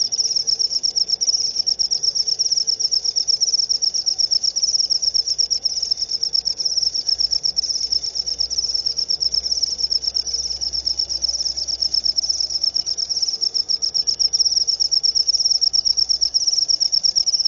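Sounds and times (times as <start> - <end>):
cricket trilling: 0.0 - 17.4.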